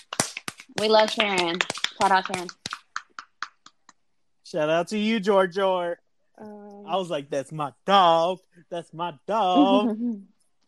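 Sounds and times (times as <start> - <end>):
hands clapping in applause: 0.0 - 4.0
speech: 0.7 - 2.6, 4.5 - 10.3.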